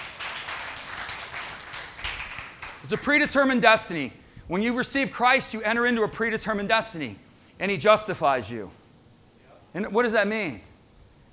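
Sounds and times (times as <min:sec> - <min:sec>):
single person clapping: 0:00.0 - 0:03.1
speech: 0:02.8 - 0:08.8, 0:09.7 - 0:10.7.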